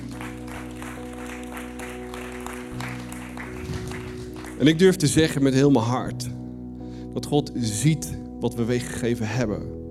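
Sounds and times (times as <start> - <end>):
audience applauding: 0.0 - 4.9
speech: 4.6 - 6.3, 7.2 - 9.8.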